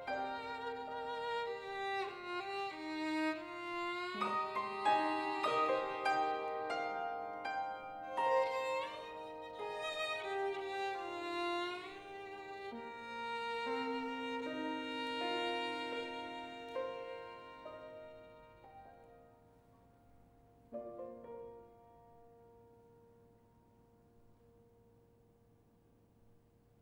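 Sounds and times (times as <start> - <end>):
violin: 0.0 - 19.3.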